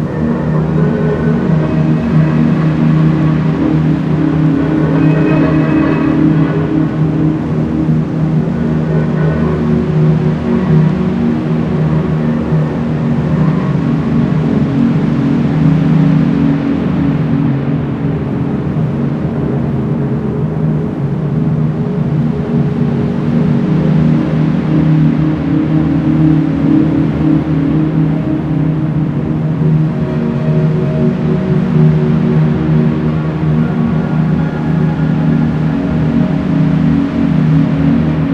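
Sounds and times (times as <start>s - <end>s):
soft piano: 0.0s - 38.3s.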